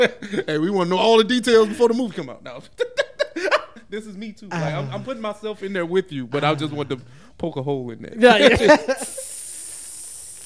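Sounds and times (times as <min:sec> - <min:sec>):
laughter: 0:00.0 - 0:00.7, 0:02.7 - 0:03.9, 0:06.3 - 0:07.0, 0:08.2 - 0:09.3
speech: 0:00.0 - 0:02.9, 0:03.9 - 0:09.2
person imitating air escaping from balloons: 0:08.9 - 0:10.4.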